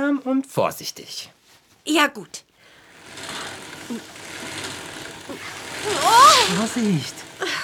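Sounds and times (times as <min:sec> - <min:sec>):
speech: 0:00.1 - 0:02.5, 0:03.2 - 0:04.2, 0:05.8 - 0:07.6
sewing machine run with a foot pedal, needle rattling: 0:02.8 - 0:07.6.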